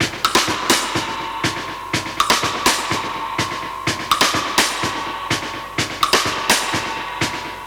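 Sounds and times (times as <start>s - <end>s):
classic drum breaks at 125 BPM: 0.0s - 7.6s.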